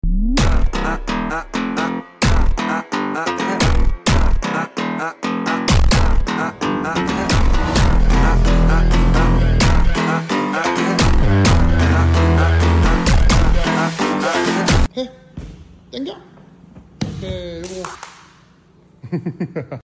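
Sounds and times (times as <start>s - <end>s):
phonk music: 0.0s - 14.9s.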